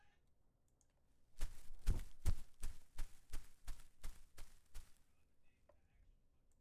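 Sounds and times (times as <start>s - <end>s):
footsteps on grass: 1.4s - 4.9s.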